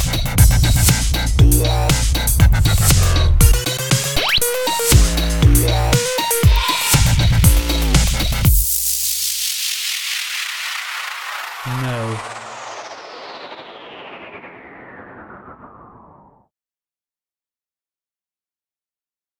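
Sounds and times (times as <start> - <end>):
club and dubstep electronic music: 0.2 - 9.2.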